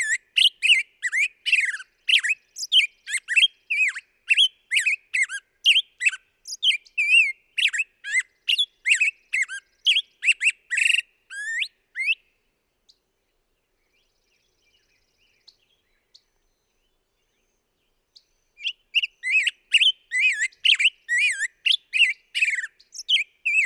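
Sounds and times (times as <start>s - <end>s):
black-headed grosbeak singing: 0.0s - 12.2s, 18.2s - 23.6s.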